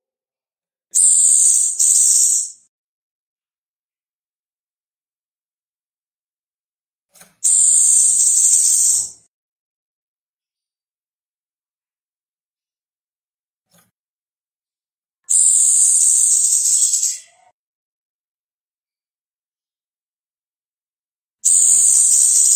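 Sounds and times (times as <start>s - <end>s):
orange-headed thrush giving a sharp high chirp and buzzy warble burst: 1.0s - 2.5s, 7.4s - 9.2s, 15.3s - 17.4s, 21.5s - 22.5s.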